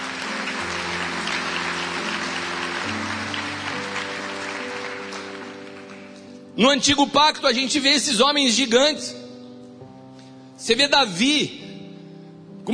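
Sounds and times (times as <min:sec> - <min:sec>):
audience applauding: 0:00.0 - 0:06.4
organ-like chord: 0:00.0 - 0:06.6
speech: 0:06.6 - 0:09.2, 0:10.6 - 0:11.6.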